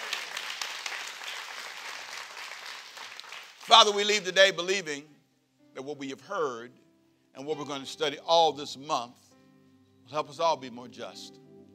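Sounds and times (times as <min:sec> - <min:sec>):
audience hand clapping: 0:00.0 - 0:04.1
speech: 0:03.7 - 0:05.1, 0:05.8 - 0:06.8, 0:07.4 - 0:09.2, 0:10.1 - 0:11.4.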